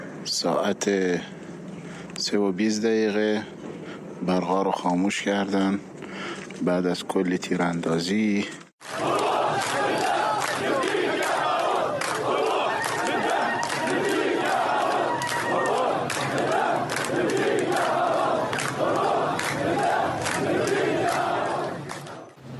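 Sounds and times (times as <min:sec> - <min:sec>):
speech: 0:00.3 - 0:01.4, 0:02.2 - 0:08.6
crowd of protesters chanting at night: 0:08.8 - 0:22.4.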